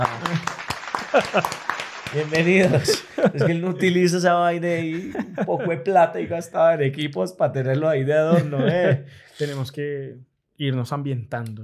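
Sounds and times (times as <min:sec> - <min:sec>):
applause sound effect: 0:00.0 - 0:03.1
laughter: 0:00.0 - 0:06.7, 0:08.2 - 0:09.6
speech: 0:01.1 - 0:11.6.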